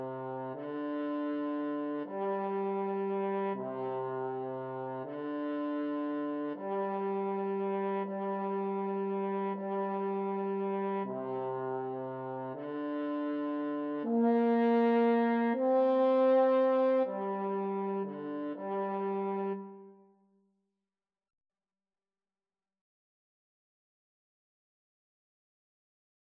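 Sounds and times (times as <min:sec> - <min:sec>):
french horn duet: 0:00.0 - 0:20.0.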